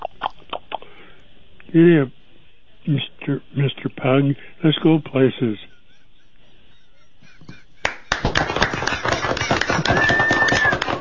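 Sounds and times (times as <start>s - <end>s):
speech: 1.7s - 2.2s, 2.8s - 5.7s
laughter: 4.8s - 10.9s
person imitating horse hooves clopping: 8.2s - 10.9s
whistled whinny-like note: 9.8s - 10.9s.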